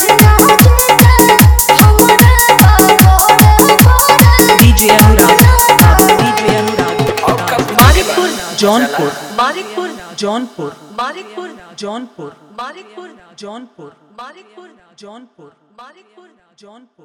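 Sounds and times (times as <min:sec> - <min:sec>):
dholak with bass mix: 0:00.0 - 0:11.0.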